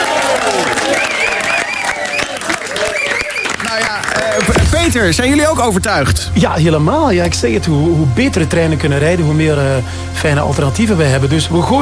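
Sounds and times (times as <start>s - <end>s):
audience applause: 0.0s - 4.6s
speech: 4.9s - 11.8s.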